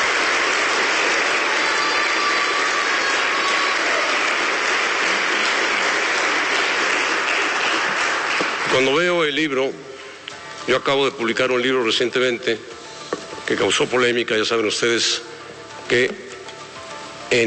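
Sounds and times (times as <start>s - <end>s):
audience applause: 0.0s - 9.0s
speech: 8.8s - 9.9s, 10.6s - 12.8s, 13.5s - 15.3s, 15.9s - 16.2s.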